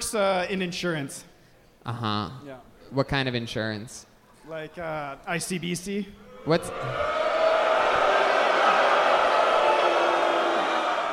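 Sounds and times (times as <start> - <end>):
speech: 0.1 - 7.2
audience booing: 6.3 - 11.1.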